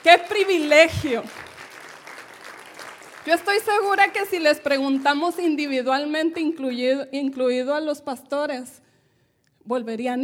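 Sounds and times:
speech: 0.0s - 1.5s, 3.2s - 8.8s, 9.6s - 10.2s
audience applause: 0.0s - 4.2s.

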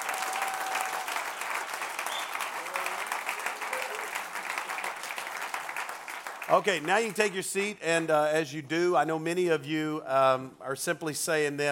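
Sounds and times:
faint cheers: 0.0s - 4.2s
audience applause: 0.0s - 7.3s
speech: 6.5s - 11.7s.

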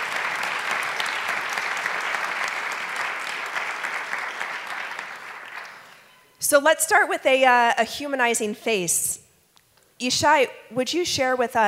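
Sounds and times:
audience applause: 0.0s - 6.1s
speech: 6.5s - 9.2s, 10.0s - 11.6s.

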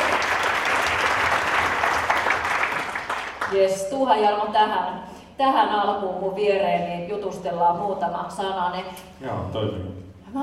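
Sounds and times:
audience applause: 0.0s - 3.6s
speech: 3.5s - 10.4s.

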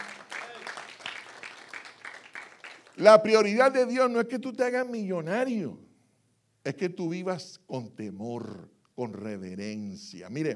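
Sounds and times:
audience clapping: 0.0s - 3.3s
speech: 3.0s - 5.8s, 6.6s - 10.5s.

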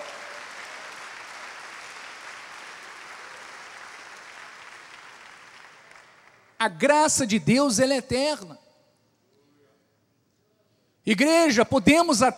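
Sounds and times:
audience applauding: 0.0s - 6.6s
speech: 6.6s - 8.6s, 11.1s - 12.3s.

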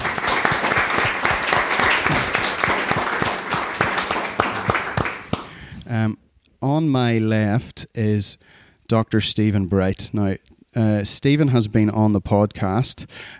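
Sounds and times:
audience applause welcoming a guest at a live event: 0.0s - 5.6s
speech: 6.8s - 13.3s.

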